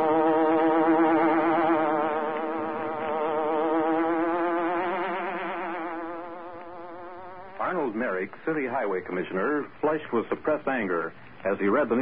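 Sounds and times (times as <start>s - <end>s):
hornet buzzing sound effect: 0.0s - 8.1s
speech: 8.1s - 12.0s.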